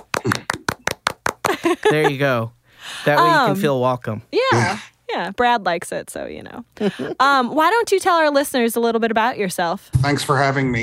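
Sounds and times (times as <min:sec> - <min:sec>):
sharp hand claps: 0:00.0 - 0:01.8
laughter: 0:01.5 - 0:02.3, 0:06.8 - 0:07.4
speech: 0:01.6 - 0:10.8.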